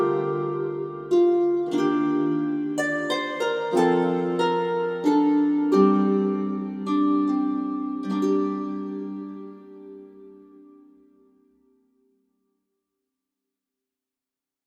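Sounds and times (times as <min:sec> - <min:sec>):
ancient mediaeval harp music: 0:00.0 - 0:11.3.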